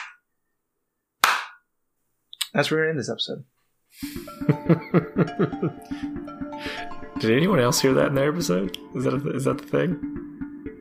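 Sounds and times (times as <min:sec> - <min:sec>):
people clapping hands: 0:01.2 - 0:01.6
speech: 0:02.5 - 0:06.4, 0:07.2 - 0:10.4
laughter: 0:04.1 - 0:06.1.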